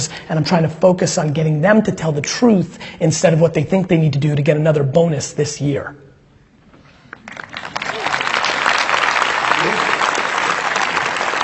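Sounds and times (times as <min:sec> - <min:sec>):
speech: 0:00.0 - 0:06.1
audience clapping: 0:07.1 - 0:11.4.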